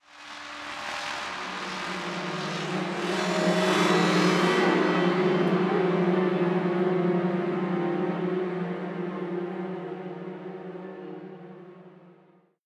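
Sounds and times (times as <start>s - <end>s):
intense musical stinger: 0.1s - 9.3s.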